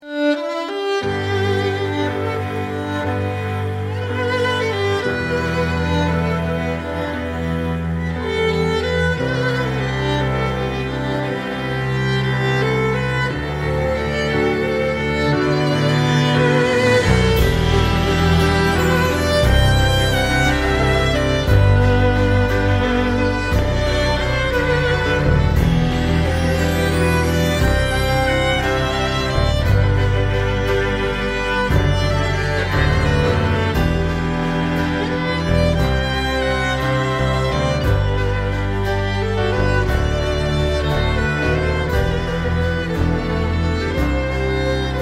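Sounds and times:
string quartet cover: 0:00.0 - 0:45.0.

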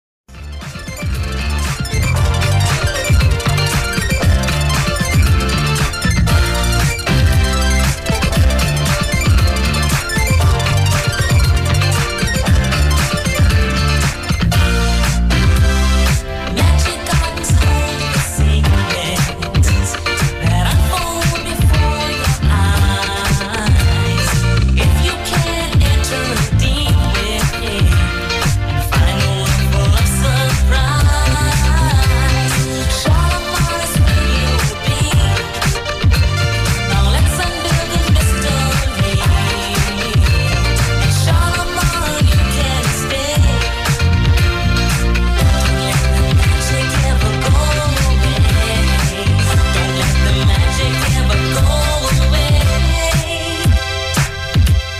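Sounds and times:
funk music: 0:00.3 - 0:54.9.

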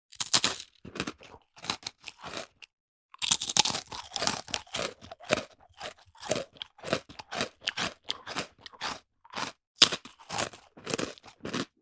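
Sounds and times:
eating cracker: 0:00.1 - 0:11.8.

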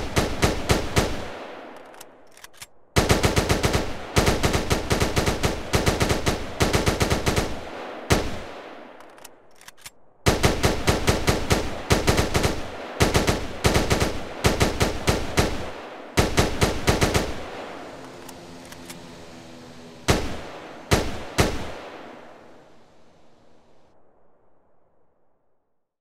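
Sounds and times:
AK47 and M4 rifle gunfire: 0:00.0 - 0:02.1, 0:03.0 - 0:18.1, 0:20.1 - 0:22.6.

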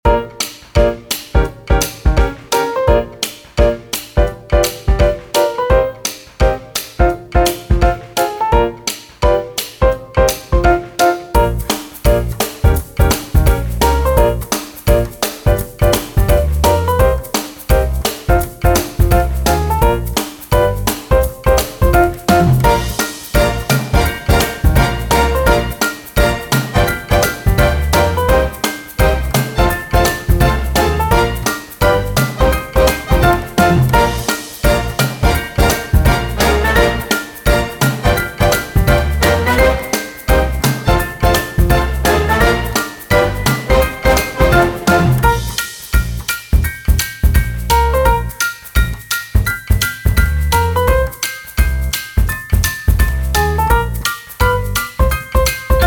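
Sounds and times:
happy jazz: 0:00.0 - 0:55.8.

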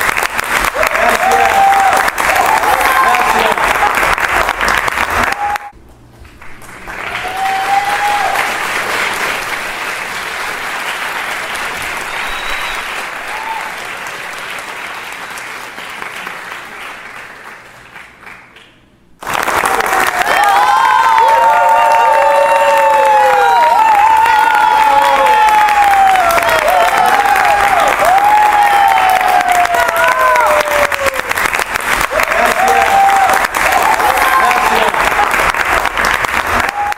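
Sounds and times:
audience applauding: 0:00.0 - 0:36.9
audience shouting: 0:00.8 - 0:04.2, 0:19.8 - 0:31.3, 0:32.1 - 0:35.5.

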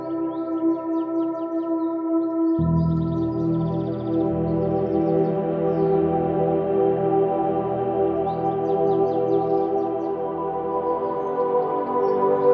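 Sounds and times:
forest nature sounds: 0:00.0 - 0:12.5
relaxing forest meditation sleep music: 0:00.0 - 0:12.5.

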